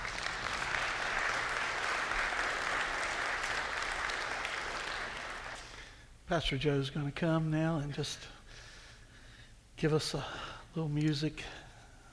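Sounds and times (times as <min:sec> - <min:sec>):
audience applauding a testimony: 0:00.0 - 0:05.8
speech: 0:06.3 - 0:08.4, 0:09.8 - 0:11.6.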